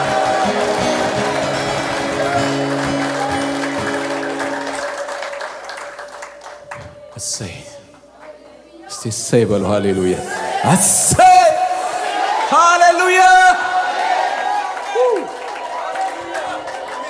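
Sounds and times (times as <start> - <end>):
congregation ululating at a worship gathering: 0.0 - 5.8, 9.9 - 17.0
congregation clapping praising God at a worship gathering: 0.0 - 8.5, 10.7 - 17.0
speech: 9.0 - 11.3, 12.5 - 13.7.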